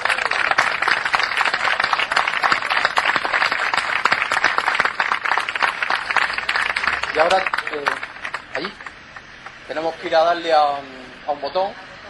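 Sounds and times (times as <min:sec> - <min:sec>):
audience applause: 0:00.0 - 0:09.6
speech: 0:07.2 - 0:08.0, 0:10.0 - 0:12.0.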